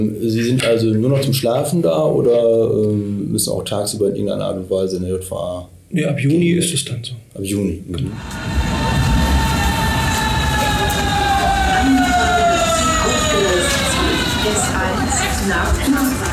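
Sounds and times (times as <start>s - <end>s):
speech: 0.0s - 8.8s
S-Bahn commuter train pulling into Zehlendorf station: 8.1s - 16.3s.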